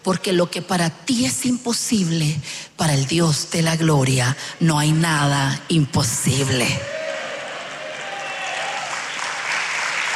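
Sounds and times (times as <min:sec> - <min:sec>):
speech: 0:00.0 - 0:07.0
audience applauding: 0:06.9 - 0:10.1.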